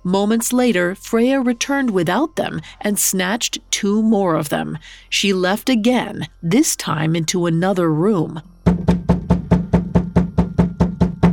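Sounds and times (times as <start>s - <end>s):
speech: 0.0s - 9.0s
knocking on a door: 8.6s - 11.3s.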